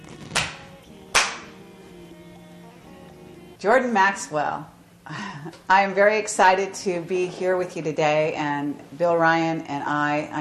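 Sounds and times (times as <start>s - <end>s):
hand clap: 0.0s - 1.6s
speech: 3.6s - 10.3s.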